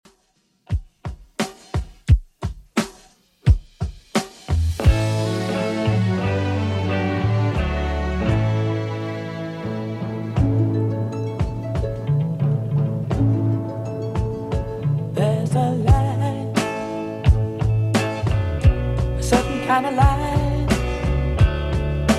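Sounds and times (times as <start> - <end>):
60s drum loop: 0.0 - 22.1.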